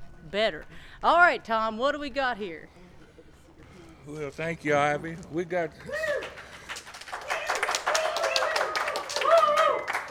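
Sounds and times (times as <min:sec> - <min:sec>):
speech: 0:00.3 - 0:02.9, 0:04.0 - 0:06.2
audience applause: 0:05.8 - 0:10.0.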